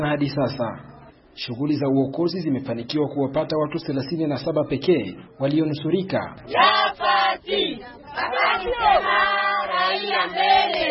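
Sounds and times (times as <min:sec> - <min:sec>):
speech: 0:00.0 - 0:10.8
large crowd of residents in Mukwija shouting and chanting: 0:06.4 - 0:10.8.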